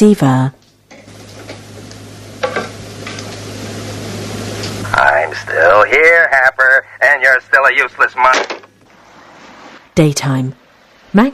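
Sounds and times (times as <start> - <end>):
speech: 0.0 - 0.6, 5.6 - 8.6, 10.0 - 11.3
hot pan sizzling: 0.9 - 4.9.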